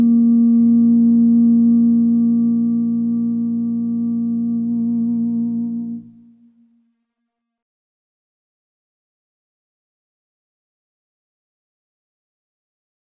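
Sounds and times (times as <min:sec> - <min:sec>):
lead melody: 0:00.1 - 0:06.8.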